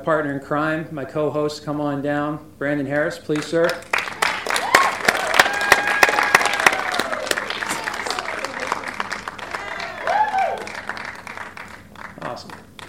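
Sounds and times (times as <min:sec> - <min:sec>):
speech: 0:00.0 - 0:03.9
audience clapping at a live event: 0:03.3 - 0:12.8
audience whoops and cheering: 0:04.2 - 0:11.0.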